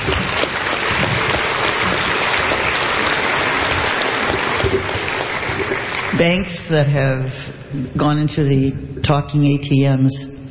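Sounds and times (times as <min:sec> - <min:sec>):
crowd applause: 0:00.0 - 0:06.6
speech: 0:06.2 - 0:10.3.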